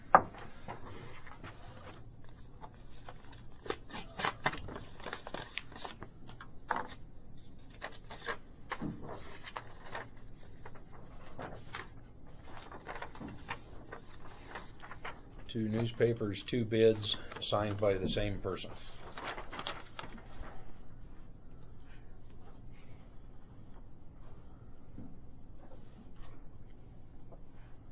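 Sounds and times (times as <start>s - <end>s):
low steady hum: 0.0s - 27.9s
clerk opening sealed bid envelopes: 0.4s - 7.0s, 7.6s - 16.0s, 17.0s - 20.2s
speech: 15.6s - 19.0s.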